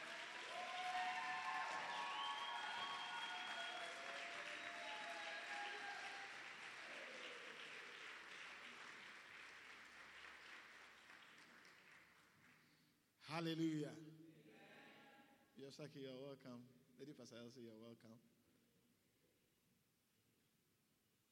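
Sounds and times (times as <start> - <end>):
church congregation applauding: 0.0 - 12.9
speech: 13.3 - 14.2, 15.6 - 18.3.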